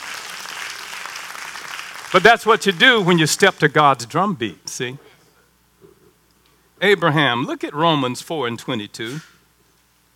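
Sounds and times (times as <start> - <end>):
audience clapping: 0.0 - 3.7
speech: 2.1 - 5.1, 6.8 - 9.3.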